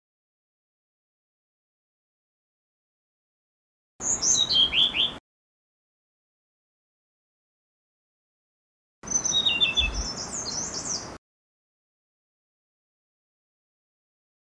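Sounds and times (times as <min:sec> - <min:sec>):
blue-throated blue flycatcher song: 0:04.0 - 0:05.2, 0:09.0 - 0:11.2.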